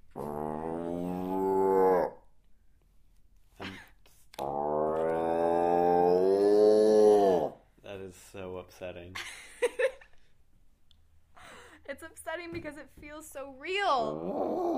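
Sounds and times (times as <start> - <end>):
person imitating a cow mooing: 0.2 - 2.2, 4.4 - 7.6, 14.0 - 14.7
speech: 8.7 - 9.9, 12.0 - 14.7.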